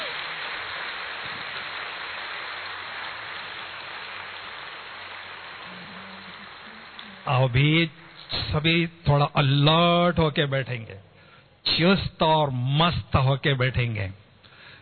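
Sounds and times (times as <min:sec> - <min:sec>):
crowd clapping loudly: 0:00.0 - 0:07.4
speech: 0:07.3 - 0:14.2.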